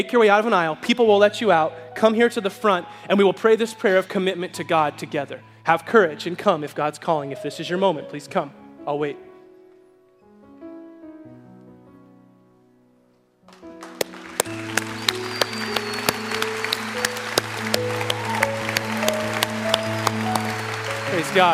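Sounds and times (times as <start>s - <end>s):
speech: 0.0s - 9.3s, 21.3s - 21.5s
audience applause: 13.5s - 21.5s.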